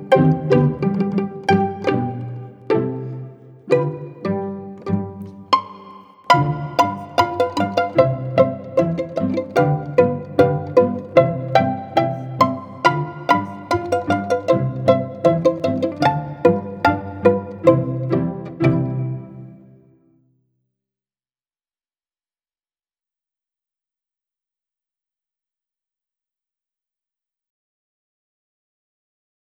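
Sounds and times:
pizzicato polka: 0:00.0 - 0:19.9.

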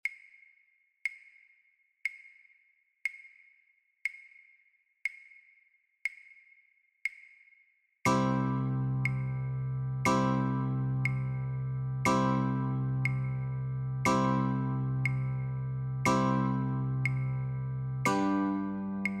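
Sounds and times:
guitar chords: 0:08.1 - 0:19.1.

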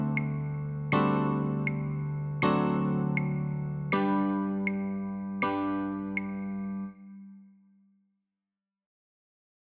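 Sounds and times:
guitar notes and chords: 0:00.0 - 0:07.4.

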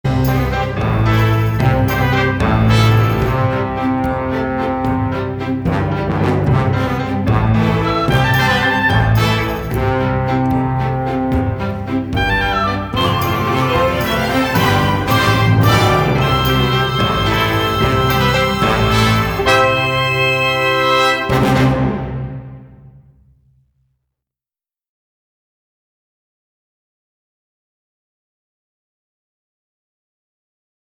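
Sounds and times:
instrumental music without words: 0:00.1 - 0:23.2.

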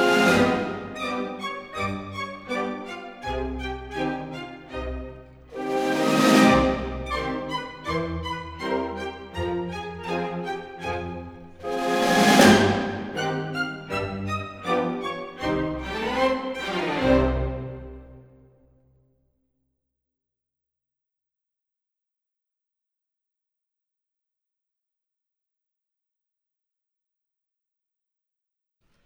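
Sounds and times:
ballet adage music for a female variation: 0:00.0 - 0:18.3.

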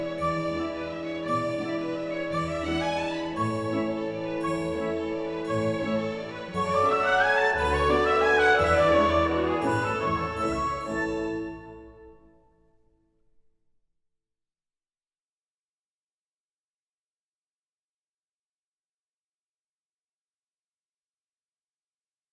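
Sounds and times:
ballet warm-up music: 0:00.0 - 0:12.4.

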